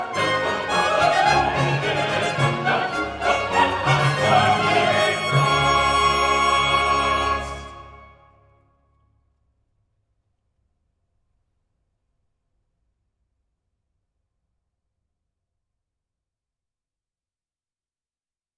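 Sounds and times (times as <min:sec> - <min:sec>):
choir singing: 0:00.0 - 0:08.3.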